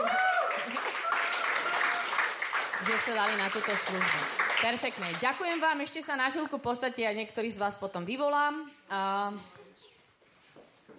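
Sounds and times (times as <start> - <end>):
applause at a gathering honoring a man and his wife: 0.0 - 5.8
speech: 2.8 - 9.6.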